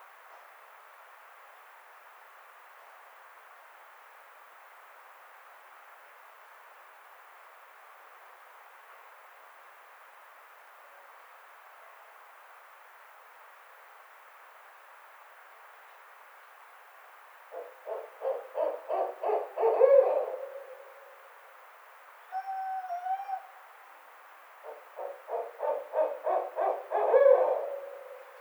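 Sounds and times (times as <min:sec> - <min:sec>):
Barred Owl calling: 0:17.5 - 0:21.3, 0:22.3 - 0:23.6, 0:24.6 - 0:28.3.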